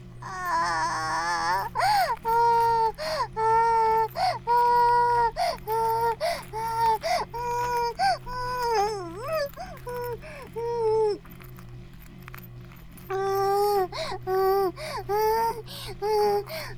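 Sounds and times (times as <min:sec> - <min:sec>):
vibrator buzzing: 0:00.0 - 0:16.7.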